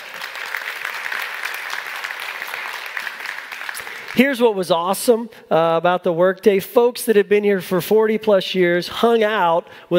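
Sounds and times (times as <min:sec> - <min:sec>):
audience applause: 0:00.0 - 0:04.3
speech: 0:04.2 - 0:09.9.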